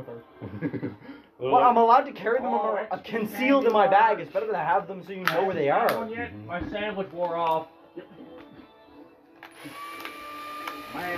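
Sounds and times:
speech: 0.0s - 8.1s, 11.0s - 11.1s
electric drill running: 9.4s - 11.1s.

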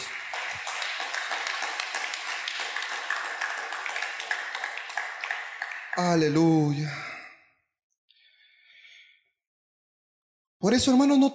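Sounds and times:
audience clapping loudly: 0.0s - 6.8s
speech: 6.0s - 7.0s, 10.7s - 11.3s.

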